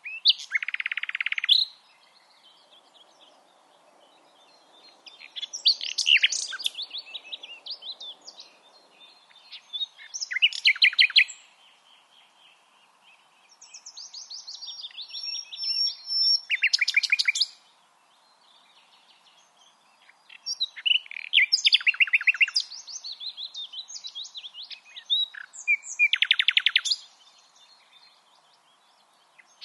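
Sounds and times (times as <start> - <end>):
Common nightingale song: 0.0 - 2.4, 5.0 - 8.5, 9.4 - 11.5, 13.6 - 17.6, 20.0 - 28.6.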